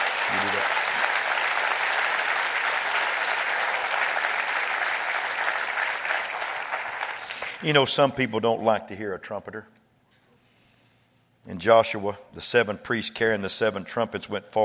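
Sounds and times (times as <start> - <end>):
audience clapping loudly: 0.0 - 7.7
speech: 7.6 - 9.8, 11.4 - 14.6.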